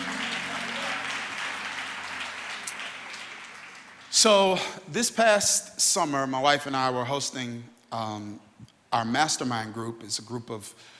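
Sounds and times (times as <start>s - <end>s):
crowd clapping: 0.0s - 4.6s
speech: 4.2s - 10.9s.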